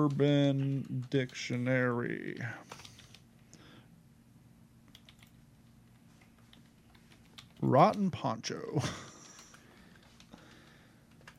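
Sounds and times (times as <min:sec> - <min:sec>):
speech: 0:00.0 - 0:02.9, 0:07.6 - 0:09.1
soft typing on a computer keyboard: 0:00.0 - 0:03.2, 0:04.9 - 0:05.4, 0:06.2 - 0:08.1, 0:09.0 - 0:11.3
low steady hum: 0:00.0 - 0:11.3
laughter: 0:08.8 - 0:09.5.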